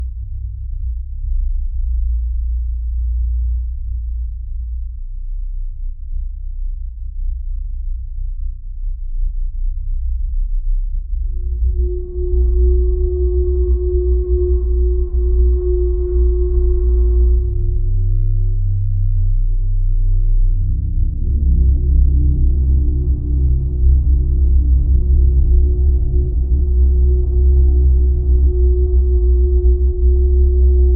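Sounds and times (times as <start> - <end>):
deep oppressive constant drones: 0.0 - 30.9.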